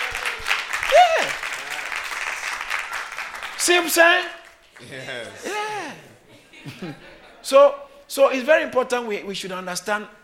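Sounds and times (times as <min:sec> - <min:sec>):
person whooping: 0:00.0 - 0:01.6, 0:05.4 - 0:06.1
audience clapping: 0:00.0 - 0:05.3
speech: 0:03.7 - 0:10.2
laughter: 0:04.8 - 0:07.6.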